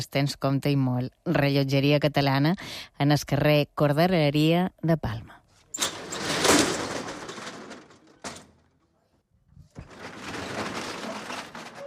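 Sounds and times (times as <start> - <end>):
speech: 0.0 - 5.4
shop's metal shutter being raised: 5.7 - 8.7, 9.8 - 11.8.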